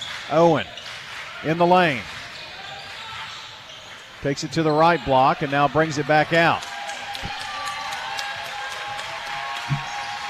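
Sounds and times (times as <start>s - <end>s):
speech: 0.3s - 0.8s, 1.4s - 2.2s, 4.2s - 7.4s
basketball arena crowd cheering and applauding: 5.9s - 10.2s.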